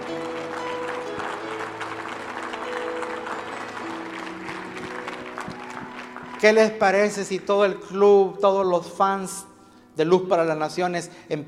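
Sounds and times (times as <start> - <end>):
audience applauding: 0.0 - 7.8
speech: 6.4 - 11.4.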